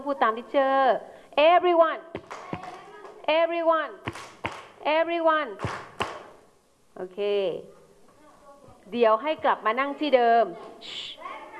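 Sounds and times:
speech: 0:00.1 - 0:02.4, 0:03.3 - 0:05.8, 0:07.0 - 0:07.8, 0:08.9 - 0:11.0
students clapping hands: 0:02.2 - 0:03.2, 0:04.1 - 0:04.8, 0:05.6 - 0:06.3.

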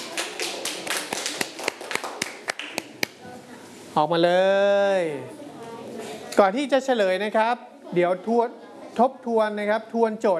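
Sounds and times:
classroom students clapping: 0:00.0 - 0:03.2
speech: 0:04.0 - 0:05.4, 0:06.4 - 0:10.3.

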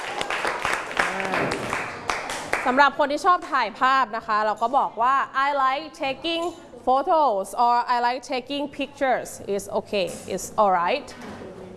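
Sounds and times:
class clapping hands during an English lesson: 0:00.0 - 0:02.8
speech: 0:02.6 - 0:11.5.

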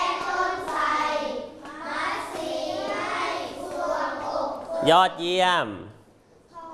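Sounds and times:
hand clapping: 0:00.1 - 0:04.7
speech: 0:04.8 - 0:06.0.

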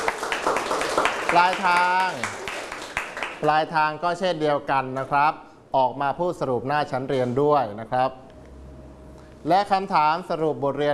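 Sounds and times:
classmates clapping for a classmate: 0:00.0 - 0:03.6
speech: 0:01.3 - 0:02.4, 0:03.4 - 0:08.2, 0:09.4 - 0:10.9.

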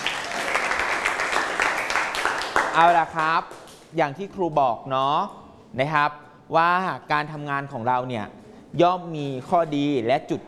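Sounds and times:
class of students clapping for a classmate: 0:00.0 - 0:03.9
speech: 0:02.8 - 0:10.4.

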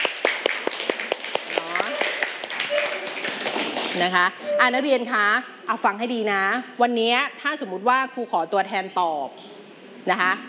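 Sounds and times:
students clapping: 0:00.0 - 0:04.1
speech: 0:04.0 - 0:10.4.

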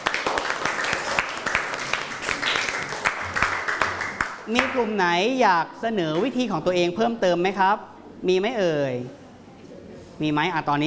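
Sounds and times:
classroom applause for a classmate: 0:00.0 - 0:04.8
speech: 0:04.5 - 0:09.2, 0:10.2 - 0:10.8.

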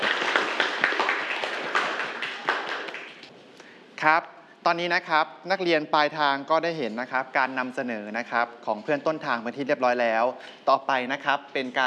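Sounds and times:
group clapping: 0:00.0 - 0:03.3
speech: 0:04.0 - 0:11.8.

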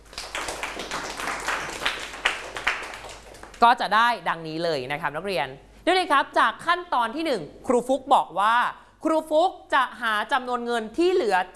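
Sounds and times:
students clapping for a group: 0:00.0 - 0:03.6
speech: 0:03.6 - 0:11.5.

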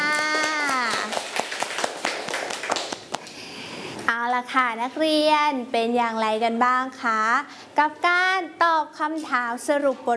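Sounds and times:
children clapping hands: 0:00.0 - 0:03.4
speech: 0:04.4 - 0:10.1.

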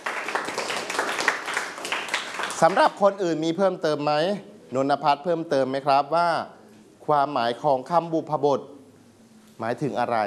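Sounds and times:
class clapping for a classmate: 0:00.0 - 0:03.0
speech: 0:02.6 - 0:08.7, 0:09.6 - 0:10.2.

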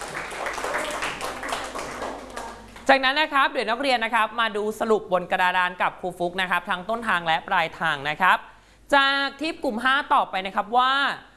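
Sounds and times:
classroom students applauding a group of classmates: 0:00.0 - 0:02.9
speech: 0:02.9 - 0:11.3.

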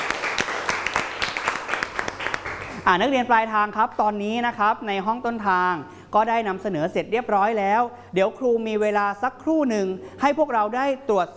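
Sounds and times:
group of students applauding: 0:00.0 - 0:02.9
speech: 0:02.9 - 0:11.3.

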